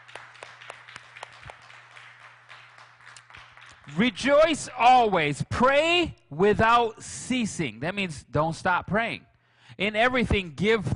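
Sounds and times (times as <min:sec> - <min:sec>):
audience clapping: 0:00.0 - 0:04.6
low electrical hum: 0:00.0 - 0:10.9
speech: 0:03.9 - 0:10.9.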